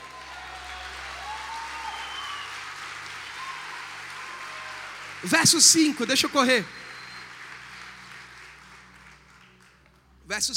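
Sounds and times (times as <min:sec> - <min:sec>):
audience applause: 0:00.0 - 0:10.5
speech: 0:05.2 - 0:06.8, 0:10.4 - 0:10.5.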